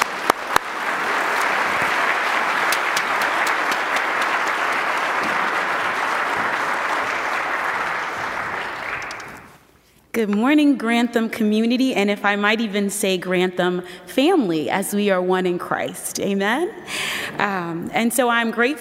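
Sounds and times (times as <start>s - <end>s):
church congregation applauding a guest speaker at a Sunday morning service: 0.0s - 9.6s
speech: 10.2s - 18.8s.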